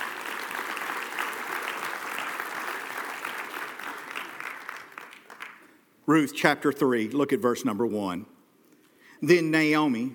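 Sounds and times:
room full of people clapping: 0.0s - 5.8s
speech: 6.1s - 8.3s, 9.2s - 10.1s.

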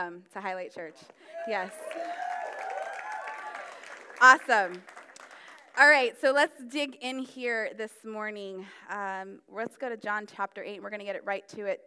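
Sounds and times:
speech: 0.0s - 2.4s, 4.2s - 5.0s, 5.8s - 11.8s
audience clapping: 1.3s - 5.8s.

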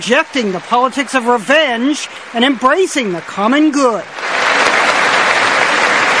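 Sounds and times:
speech: 0.0s - 4.4s
large crowd applause in a legislative chamber: 4.2s - 6.1s.

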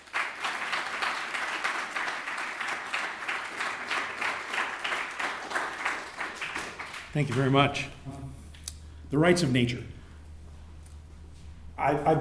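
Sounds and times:
audience applause: 0.0s - 7.9s
speech: 7.1s - 8.2s, 9.1s - 9.9s, 11.8s - 12.1s.

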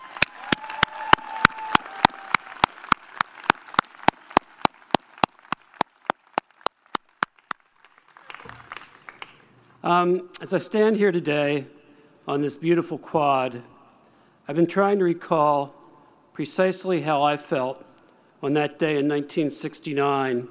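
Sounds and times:
graduation crowd applause: 0.0s - 9.6s
speech: 9.9s - 13.7s, 14.5s - 15.8s, 16.4s - 20.4s.

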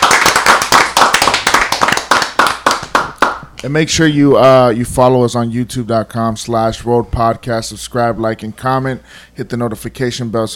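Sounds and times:
hands clapping applause: 0.0s - 3.7s
speech: 3.6s - 10.5s.

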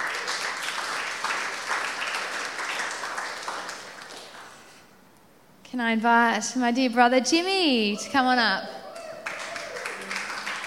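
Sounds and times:
audience clapping: 0.0s - 4.7s, 9.0s - 10.6s
speech: 5.7s - 8.8s.

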